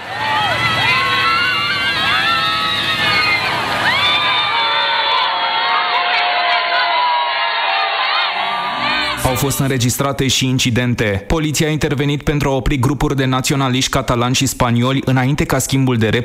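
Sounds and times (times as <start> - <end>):
crowd cheering and giving an ovation: 0.0 - 10.1
speech: 9.4 - 16.2.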